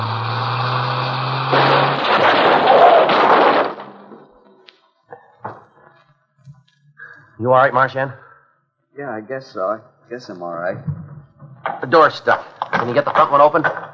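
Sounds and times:
car crash: 0.0 - 4.6, 10.7 - 13.9
speech: 7.4 - 8.2, 9.0 - 11.0, 11.8 - 13.8.

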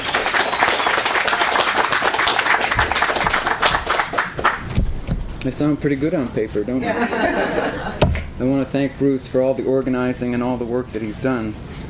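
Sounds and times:
audience applause: 0.0 - 4.7
speech: 5.4 - 11.7
laughter: 6.7 - 8.1.

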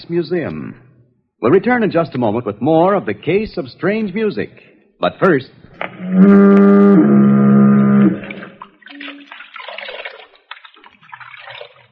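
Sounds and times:
speech: 0.1 - 7.3
foghorn blast: 6.0 - 8.4.

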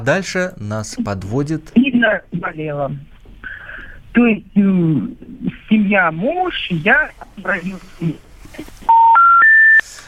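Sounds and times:
speech: 0.0 - 3.1, 4.2 - 8.7
electronic telephone dialing tones: 8.9 - 9.8.

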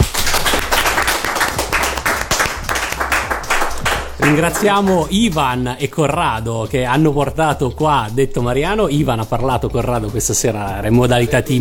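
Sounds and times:
audience applause: 0.0 - 5.1
speech: 4.2 - 11.5.

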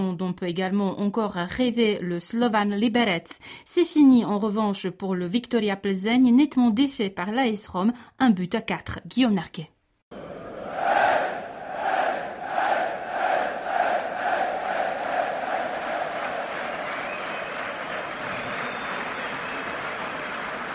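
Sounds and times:
speech: 0.1 - 9.8
stadium crowd ovation after final whistle: 10.2 - 20.7.

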